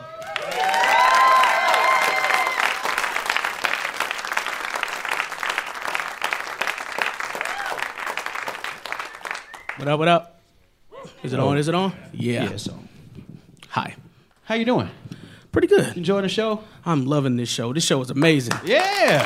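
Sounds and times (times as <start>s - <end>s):
crowd whooping and cheering: 0.0s - 5.1s, 7.0s - 9.8s, 18.6s - 19.2s
crowd applause: 0.0s - 9.8s, 18.5s - 19.2s
speech: 9.8s - 10.3s, 11.2s - 12.9s, 14.5s - 15.0s, 15.6s - 19.2s.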